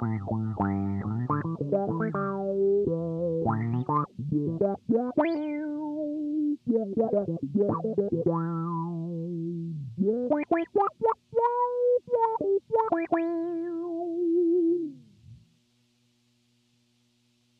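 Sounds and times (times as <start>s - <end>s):
guitar with envelope follower effect: 0.0s - 15.6s.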